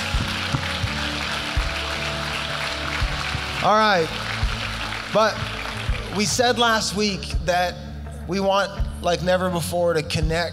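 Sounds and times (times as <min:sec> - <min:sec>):
audience applause: 0:00.0 - 0:06.8
speech: 0:03.6 - 0:04.3, 0:05.1 - 0:10.5.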